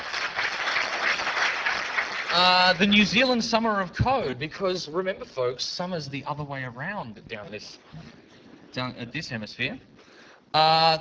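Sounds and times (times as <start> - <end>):
audience clapping at a talk honouring New Zealand open-source projects: 0.0 - 3.2
speech: 2.3 - 9.9, 10.5 - 10.9.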